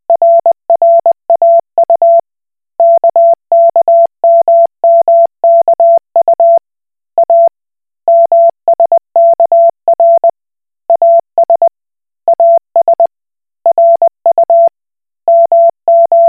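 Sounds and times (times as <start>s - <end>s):
Koch Morse code beeps: 0.1s - 2.2s, 2.8s - 6.6s, 7.2s - 7.5s, 8.1s - 10.3s, 10.9s - 11.7s, 13.7s - 14.7s, 15.3s - 16.2s.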